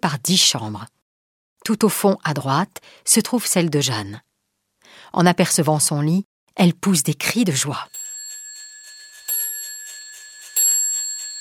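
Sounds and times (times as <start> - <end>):
speech: 0.0 - 1.0, 1.6 - 4.3, 4.9 - 8.0
clock striking eleven o'clock: 7.9 - 11.3.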